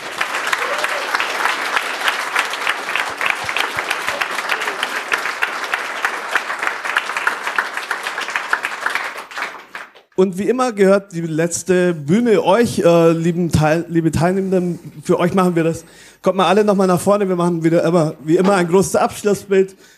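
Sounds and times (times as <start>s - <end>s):
audience applause: 0.0s - 10.1s
speech: 10.2s - 19.9s.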